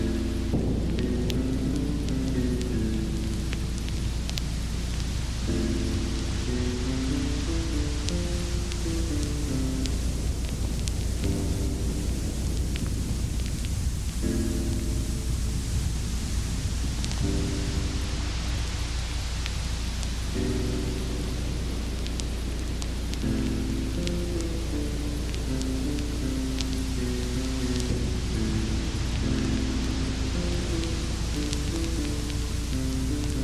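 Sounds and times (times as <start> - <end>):
constant low rumble: 0.0 - 33.4
dense hiss of rain: 0.0 - 33.4
gentle piano melodies: 0.0 - 33.4.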